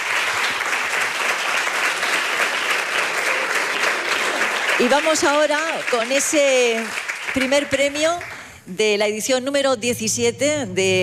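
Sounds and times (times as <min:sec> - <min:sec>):
audience applause: 0:00.0 - 0:08.6
speech: 0:04.8 - 0:11.0.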